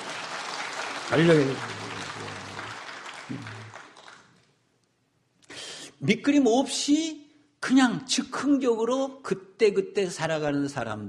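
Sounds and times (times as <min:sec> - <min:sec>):
audience clapping: 0:00.0 - 0:04.6
speech: 0:01.1 - 0:01.8, 0:03.3 - 0:03.6, 0:06.0 - 0:11.0.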